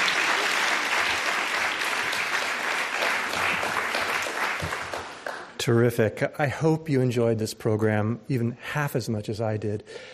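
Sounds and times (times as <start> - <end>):
audience applause: 0.0 - 5.6
speech: 5.6 - 10.1.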